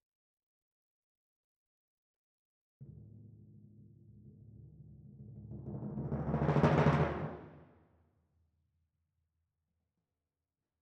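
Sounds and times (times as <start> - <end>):
timpani: 2.8 - 7.7.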